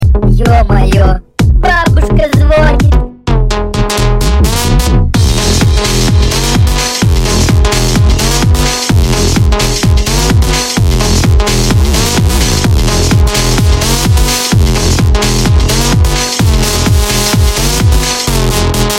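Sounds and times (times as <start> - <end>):
tecktonic electronic dance remix: 0.0 - 18.9.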